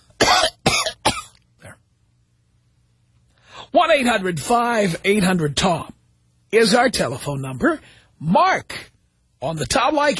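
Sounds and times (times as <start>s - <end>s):
cough: 0.2s - 1.8s
speech: 3.8s - 10.1s.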